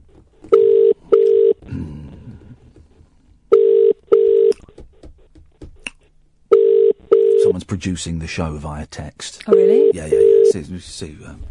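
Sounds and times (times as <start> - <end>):
ringback tone of an unanswered outgoing telephone call: 0.6 - 1.6, 3.5 - 4.5, 6.5 - 7.5, 9.5 - 10.6
speech: 7.8 - 11.5.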